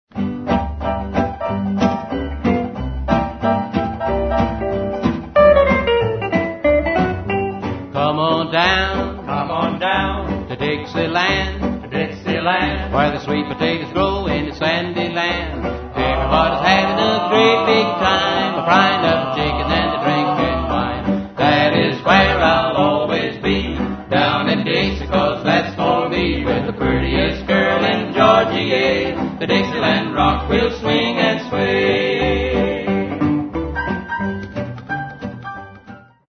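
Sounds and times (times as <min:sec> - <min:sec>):
dixieland jazz: 0:00.4 - 0:34.3.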